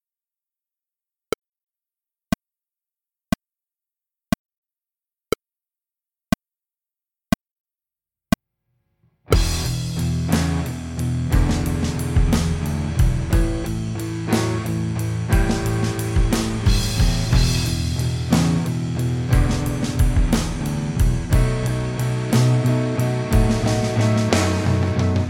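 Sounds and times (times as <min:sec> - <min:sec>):
drums: 0:09.3 - 0:25.2.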